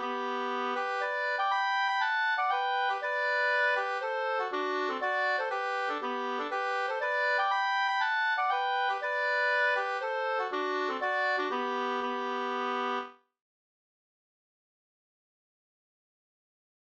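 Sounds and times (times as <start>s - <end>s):
polska folk dance tune: 0.0s - 13.1s.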